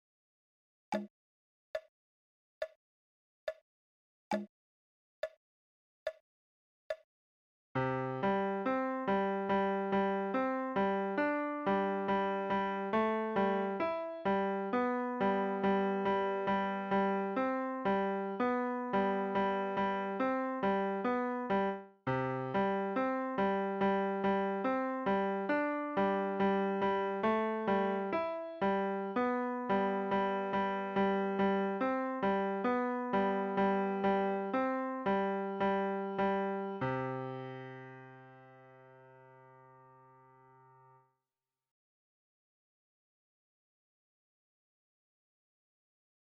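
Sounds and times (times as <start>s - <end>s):
prelude piece, left channel: 7.8s - 39.8s.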